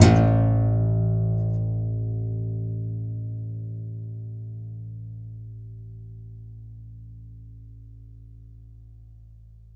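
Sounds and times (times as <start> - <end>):
contrabass balalaika plucked strings: 0.0 - 9.7.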